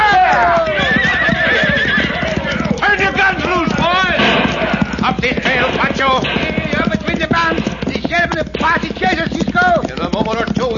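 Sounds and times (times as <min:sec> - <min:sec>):
hooves clip-clopping: 0:00.0 - 0:10.7
horses neighing: 0:00.0 - 0:10.7.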